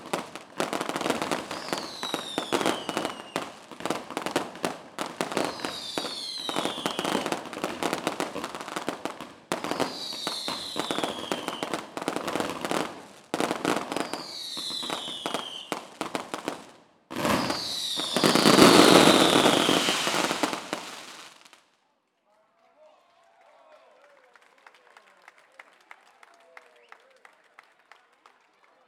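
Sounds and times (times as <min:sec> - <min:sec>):
fireworks: 0:00.0 - 0:21.6.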